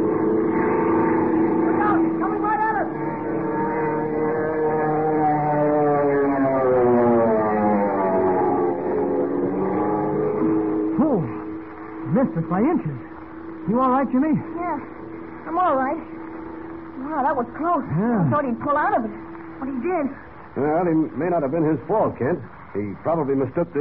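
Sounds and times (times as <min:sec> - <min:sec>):
wind screaming through the struts: 0:00.0 - 0:12.0
monoplane motor roaring in a power dive: 0:00.0 - 0:23.7
speech: 0:12.2 - 0:13.1, 0:13.7 - 0:14.9, 0:15.5 - 0:16.2, 0:17.1 - 0:23.7.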